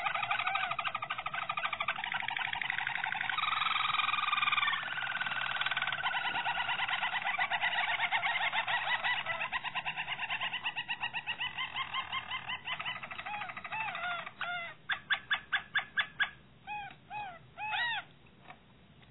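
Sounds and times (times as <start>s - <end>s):
Harz Roller canary singing: 0.0s - 18.2s.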